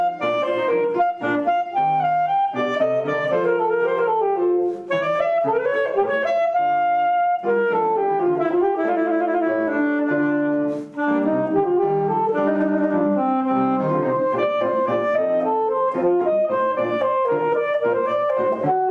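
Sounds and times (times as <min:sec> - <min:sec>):
alto saxophone playing a sonata: 0:00.0 - 0:18.8.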